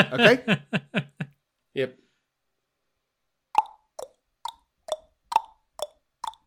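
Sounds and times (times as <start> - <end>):
speech: 0.0 - 1.1, 1.8 - 2.0
laughter: 0.0 - 1.3
voice imitating a horse trotting with tongue clops: 3.6 - 6.4.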